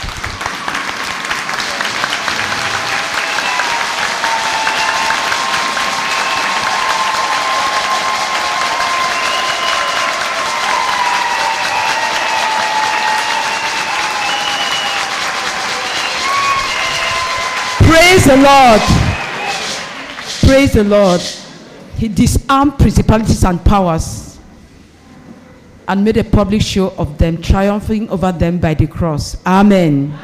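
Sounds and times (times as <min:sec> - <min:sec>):
church congregation standing and clapping for the Lord: 0:00.0 - 0:21.8
speech: 0:18.3 - 0:19.1, 0:20.5 - 0:21.4, 0:22.0 - 0:24.2, 0:25.9 - 0:30.2.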